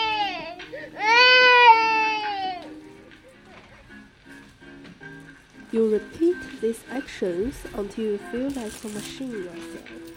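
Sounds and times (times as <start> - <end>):
baby crying: 0.0 - 2.7
speech: 5.7 - 10.1.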